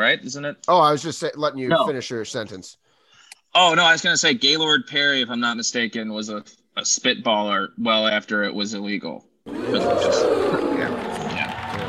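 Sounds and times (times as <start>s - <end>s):
speech: 0.0s - 2.8s, 3.5s - 11.1s
crowd cheering: 9.5s - 11.8s.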